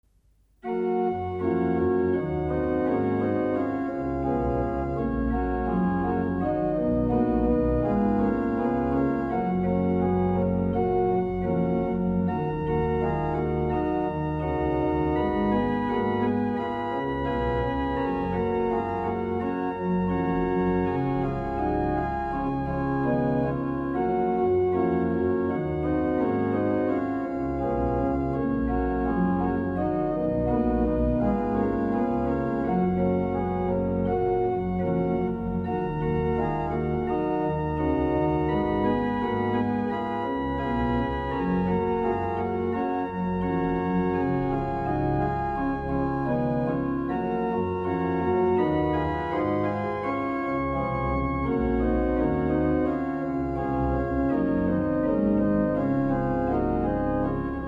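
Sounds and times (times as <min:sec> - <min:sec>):
organ chorale prelude: 0:00.6 - 0:57.6.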